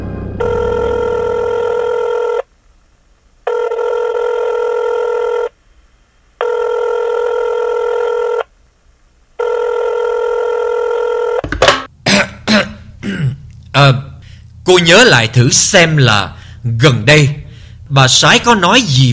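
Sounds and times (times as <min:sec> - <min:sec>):
telephone ringing with a bright buzzing tone: 0:00.4 - 0:02.5, 0:03.5 - 0:05.5, 0:06.4 - 0:08.5, 0:09.4 - 0:11.5
short rough throat-clearing or coughing: 0:12.0 - 0:13.5
speech: 0:14.7 - 0:19.1.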